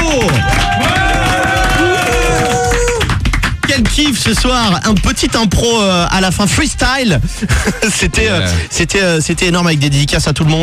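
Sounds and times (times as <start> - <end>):
applause in studio: 0.0 - 5.6
speech: 4.2 - 10.6
laughter: 7.2 - 8.7.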